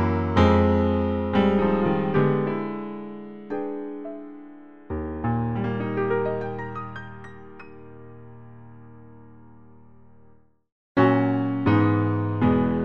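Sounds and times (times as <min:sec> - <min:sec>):
piano: 0:00.0 - 0:12.8.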